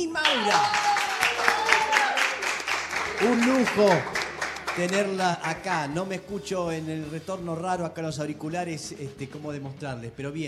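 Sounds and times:
speech: 0.0 - 0.8, 3.2 - 4.2, 4.8 - 10.4
studio applause: 0.0 - 6.3.

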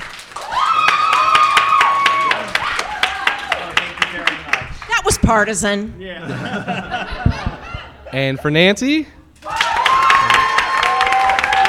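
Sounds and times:
audience clapping for a vote: 0.0 - 5.0, 9.4 - 11.6
whooping cheer: 0.4 - 3.7, 9.4 - 11.6
speech: 5.3 - 7.2, 8.1 - 9.2
laughter: 6.2 - 8.6.

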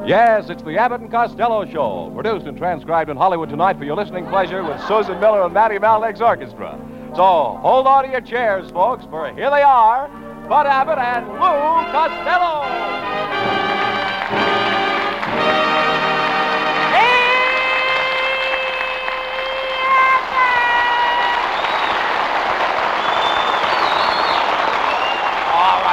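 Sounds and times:
speech: 0.0 - 13.6
laughter: 4.0 - 6.0
applause: 13.4 - 25.9
studio audience cheering and yelling: 16.8 - 25.9
high drawn-out whoops: 16.9 - 22.2.

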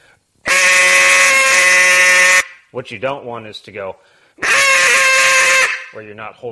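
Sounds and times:
loud long hen quack blown on a duck call: 0.5 - 2.6, 4.4 - 6.0
speech: 2.8 - 5.1, 5.9 - 6.5.

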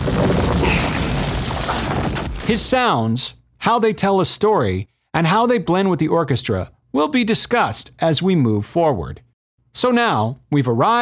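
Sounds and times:
car tire coasting down a road: 0.0 - 2.5
speech: 2.5 - 10.9.

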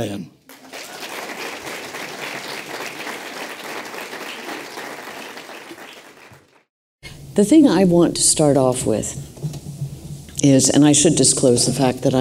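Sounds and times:
speech: 0.0 - 0.4, 7.4 - 9.3, 10.4 - 12.1
audience applause: 0.5 - 6.7.

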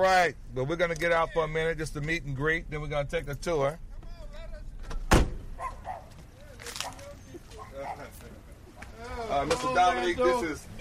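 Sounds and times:
speech: 0.0 - 3.9, 9.3 - 10.7
door shutting in front of a home: 4.8 - 5.9.

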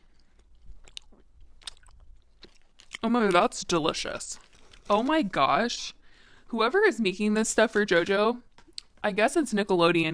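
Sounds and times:
eating a large blue raspberry gummy candy for ASMR: 0.0 - 5.6, 8.5 - 9.0
speech: 3.0 - 10.1.

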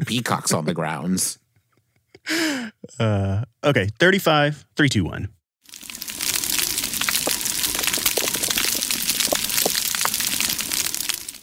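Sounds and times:
speech: 0.1 - 1.4, 2.2 - 5.4
underwater coral reef crackling: 5.7 - 11.4.

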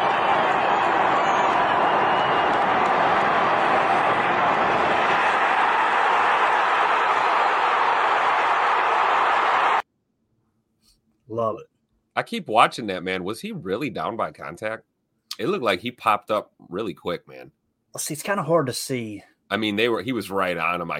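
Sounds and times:
stadium crowd roaring: 0.0 - 9.8
speech: 11.5 - 20.9.

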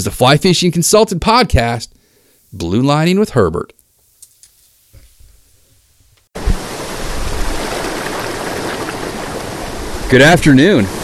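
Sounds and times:
speech: 0.0 - 1.9, 2.5 - 3.8, 10.1 - 11.0
flowing river water: 6.4 - 11.0.

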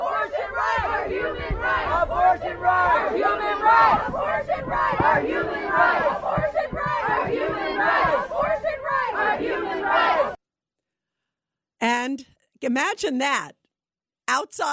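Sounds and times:
protest crowd shouting: 0.0 - 10.4
speech: 11.8 - 13.6, 14.3 - 14.7.

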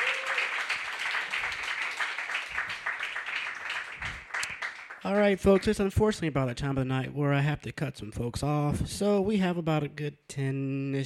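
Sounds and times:
audience applause: 0.0 - 5.8
speech: 5.0 - 11.0.

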